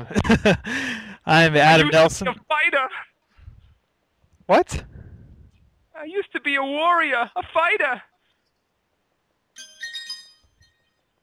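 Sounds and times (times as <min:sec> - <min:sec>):
laughter: 0:00.0 - 0:01.0
speech: 0:00.0 - 0:03.1, 0:04.5 - 0:04.9, 0:06.0 - 0:08.1
new cell phone ringing: 0:09.6 - 0:11.0.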